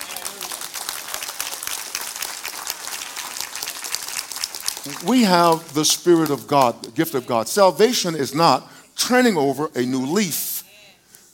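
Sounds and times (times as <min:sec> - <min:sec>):
faint crowd voices: 0:00.0 - 0:01.8
audience applauding: 0:00.0 - 0:07.0
speech: 0:04.8 - 0:10.5.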